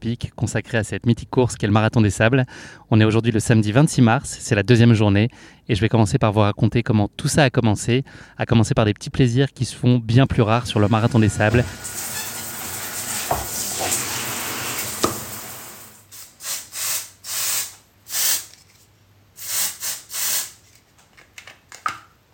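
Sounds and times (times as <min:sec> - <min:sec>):
speech: 0:00.0 - 0:12.0
shower running: 0:10.5 - 0:18.4
deodorant spray bursts: 0:11.8 - 0:18.5, 0:19.4 - 0:20.6.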